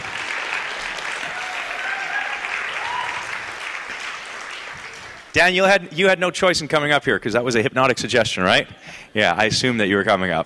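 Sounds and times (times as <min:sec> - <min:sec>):
audience applause: 0:00.0 - 0:05.4
speech: 0:05.4 - 0:10.4.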